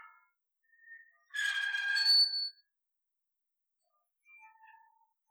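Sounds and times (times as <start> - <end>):
squeaky gate: 1.0 - 2.6.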